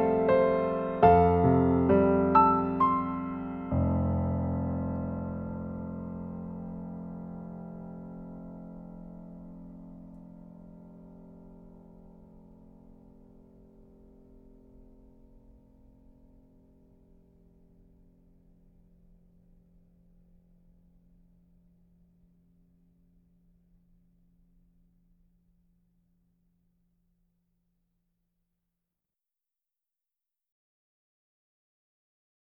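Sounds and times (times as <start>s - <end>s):
musical accompaniment: 0.0s - 4.6s.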